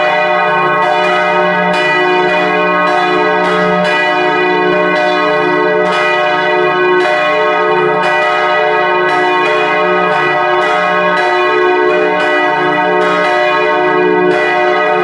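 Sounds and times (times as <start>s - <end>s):
church bells ringing on a Sunday: 0.0s - 15.0s.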